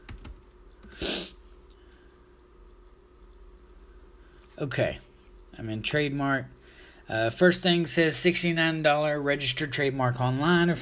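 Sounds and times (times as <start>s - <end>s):
typing a search on a computer keyboard: 0.0s - 1.0s
speech: 4.6s - 10.7s.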